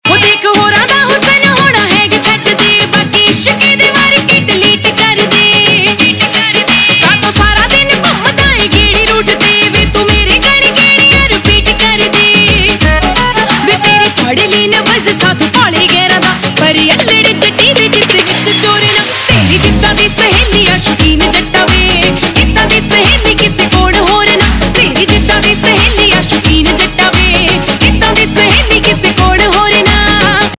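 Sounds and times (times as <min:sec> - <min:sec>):
Punjabi pop ringtone: 0:00.2 - 0:30.5.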